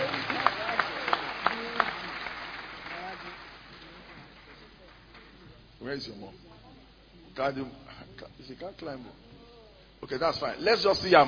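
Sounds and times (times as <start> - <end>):
audience clapping: 0.0 - 5.6
murmur of voices: 0.0 - 11.2
speech: 5.9 - 6.5, 7.4 - 9.2, 10.0 - 11.2.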